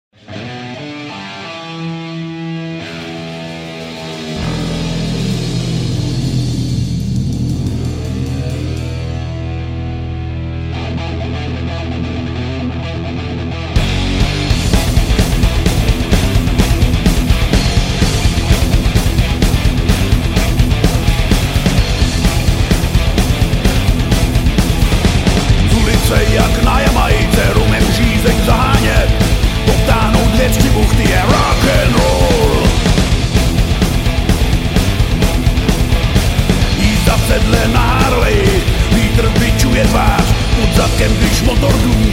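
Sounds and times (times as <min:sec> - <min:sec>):
rock and roll music: 0:00.1 - 0:42.1.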